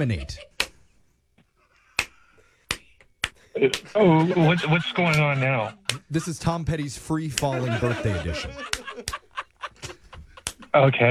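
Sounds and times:
speech: 0.0s - 0.5s, 3.6s - 9.1s, 10.8s - 11.0s
laughter: 0.0s - 0.8s, 3.4s - 11.0s
finger snaps: 1.9s - 3.9s.

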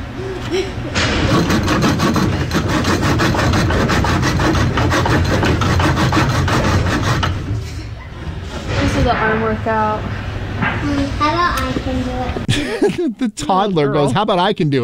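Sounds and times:
laughter: 0.2s - 1.0s, 12.5s - 13.4s
speech: 0.5s - 1.4s, 9.5s - 14.8s
hand saw cutting wood: 1.2s - 7.6s
low rumble: 7.5s - 12.2s.

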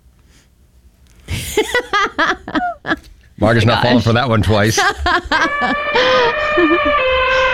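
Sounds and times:
laughter: 1.3s - 7.5s
speech: 1.6s - 7.4s
person imitating an elephant trumpeting: 5.4s - 7.5s.

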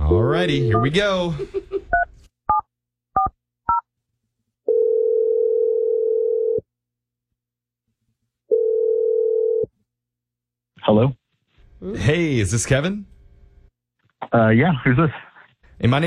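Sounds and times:
long steady phone ringback tones through a phone line: 0.1s - 1.0s, 4.7s - 6.6s, 8.5s - 9.7s
speech: 0.2s - 1.6s, 10.9s - 11.2s, 11.8s - 13.1s, 14.2s - 16.0s.

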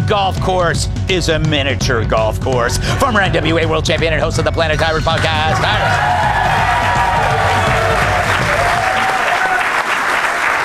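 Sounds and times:
speech: 0.1s - 7.0s
crowd applause and cheering: 4.6s - 10.6s.

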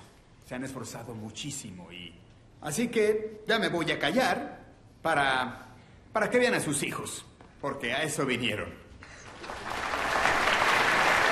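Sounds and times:
speech: 0.5s - 8.8s
audience applause at an annual autumn high school choir concert: 9.2s - 11.2s.

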